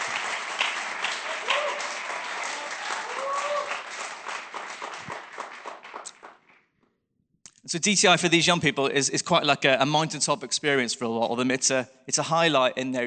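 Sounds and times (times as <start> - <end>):
faint cheers: 0.0 - 4.1
audience applause: 0.0 - 6.6
speech: 7.7 - 13.0.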